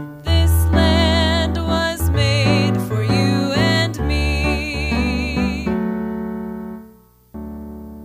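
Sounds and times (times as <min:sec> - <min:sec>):
vocals: 0:00.2 - 0:06.3.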